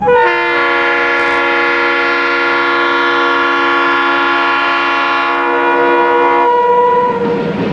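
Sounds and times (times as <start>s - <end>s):
horn: 0.0s - 7.5s.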